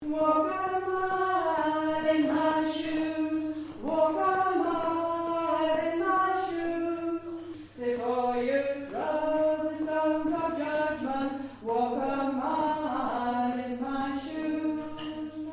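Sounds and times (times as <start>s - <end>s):
soprano singing: 0.0s - 15.5s.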